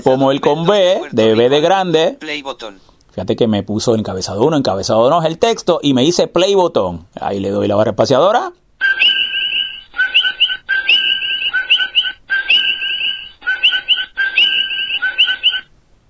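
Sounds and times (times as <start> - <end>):
speech: 0.0 - 9.1
coqui frog singing: 8.8 - 15.7.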